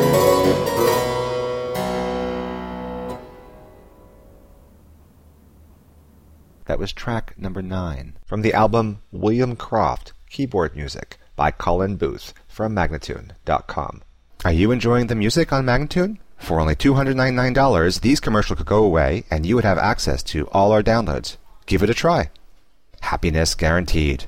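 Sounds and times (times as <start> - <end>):
keyboard suite music: 0.0 - 5.0
person speaking: 6.6 - 24.2.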